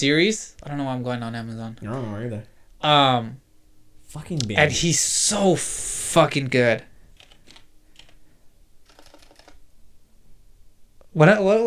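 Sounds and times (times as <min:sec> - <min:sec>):
speech: 0:00.0 - 0:03.4, 0:04.1 - 0:06.9, 0:11.2 - 0:11.6
faint low hum: 0:00.0 - 0:11.6
keystrokes on a computer keyboard typing a search: 0:07.2 - 0:08.2, 0:08.8 - 0:09.6.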